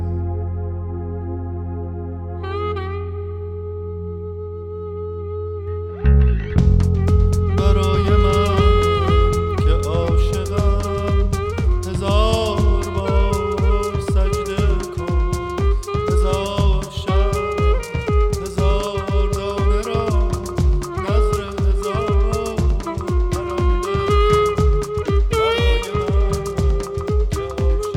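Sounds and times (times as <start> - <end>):
saxophone: 0.0 - 27.9.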